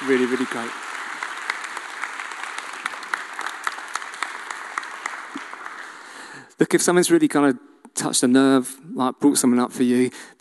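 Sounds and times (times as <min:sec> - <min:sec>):
crowd applauding: 0:00.0 - 0:06.4
speech: 0:00.1 - 0:00.9, 0:06.6 - 0:10.3.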